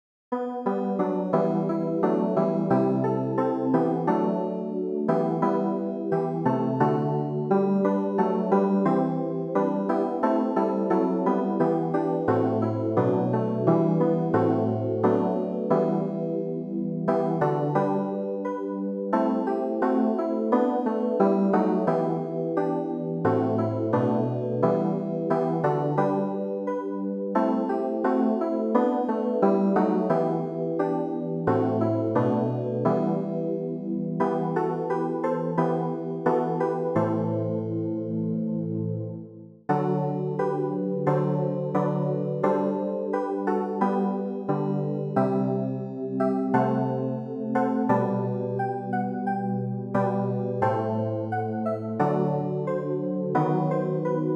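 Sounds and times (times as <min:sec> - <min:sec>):
keyboard: 0:00.3 - 0:54.3.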